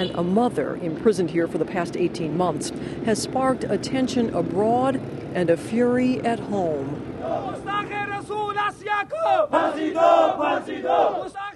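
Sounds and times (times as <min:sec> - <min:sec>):
speech: 0:00.0 - 0:11.4
small crowd of men chanting in unison: 0:07.2 - 0:08.0, 0:08.8 - 0:11.5.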